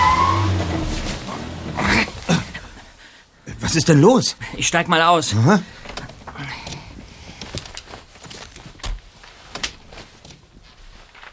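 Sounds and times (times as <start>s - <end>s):
sabotaged rental car engine breaking down with smoke from under the hood: 0.0s - 2.8s
speech: 3.7s - 5.9s.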